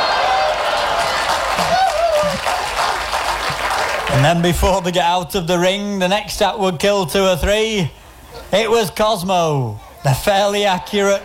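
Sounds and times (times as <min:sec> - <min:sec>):
circus audience cheering: 0:00.0 - 0:04.8
speech: 0:04.2 - 0:11.2.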